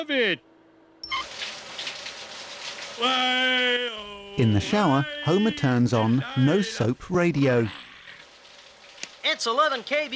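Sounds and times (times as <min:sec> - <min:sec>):
speech: 0:00.0 - 0:00.5, 0:03.0 - 0:07.8, 0:09.3 - 0:10.1
short squeaky tone: 0:01.0 - 0:01.5
urine stream splashing into water: 0:01.2 - 0:03.2, 0:08.2 - 0:10.1.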